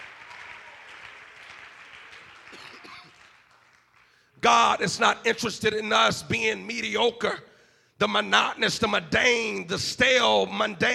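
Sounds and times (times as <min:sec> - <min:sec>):
audience clapping hands: 0:00.0 - 0:04.8
speech: 0:04.4 - 0:10.9.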